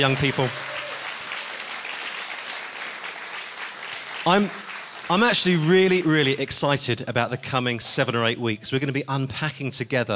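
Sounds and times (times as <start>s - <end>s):
speech: 0.0s - 0.7s, 4.2s - 10.1s
round of applause: 0.0s - 6.6s.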